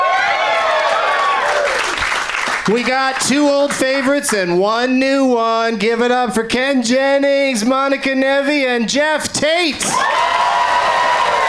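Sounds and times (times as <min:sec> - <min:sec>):
studio audience applause welcoming guests onto a show: 0:00.0 - 0:03.2, 0:09.9 - 0:11.4
speech: 0:02.7 - 0:10.5.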